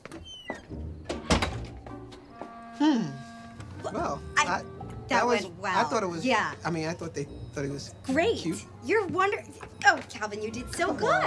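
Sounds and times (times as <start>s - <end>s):
front door closing: 0.0s - 2.7s
speech: 2.8s - 11.2s.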